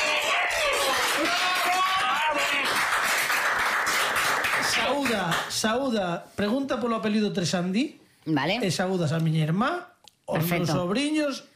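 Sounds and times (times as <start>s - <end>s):
audience applause: 0.0s - 5.5s
speech: 4.8s - 11.5s.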